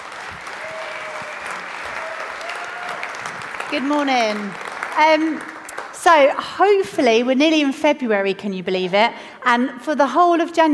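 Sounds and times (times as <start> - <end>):
audience applause welcoming a speaker: 0.0 - 6.0
speech: 3.7 - 10.7.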